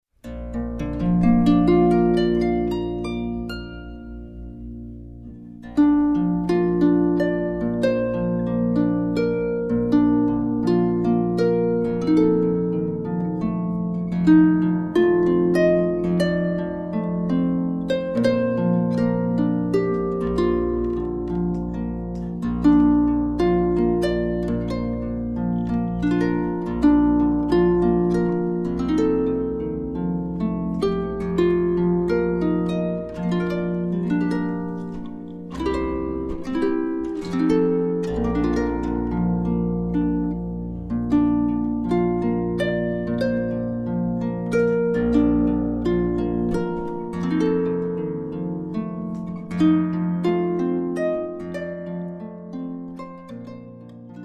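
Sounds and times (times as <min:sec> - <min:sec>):
harp playing a lullaby: 0:00.1 - 0:54.2.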